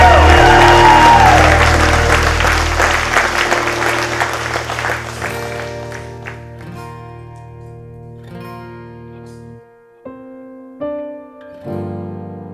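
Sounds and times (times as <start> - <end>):
audience applauding and cheering: 0.0 - 6.8.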